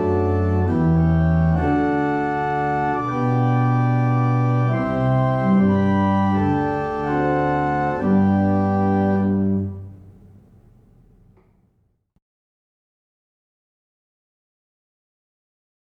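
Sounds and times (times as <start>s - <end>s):
barrel organ: 0.0s - 11.6s.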